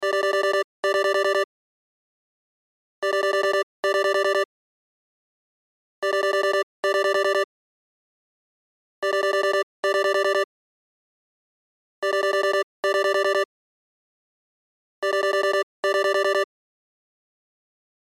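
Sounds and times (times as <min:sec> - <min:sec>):
cell phone ringtone: 0:00.0 - 0:01.5, 0:03.0 - 0:04.5, 0:06.0 - 0:07.5, 0:09.0 - 0:10.5, 0:12.0 - 0:13.5, 0:15.0 - 0:16.5.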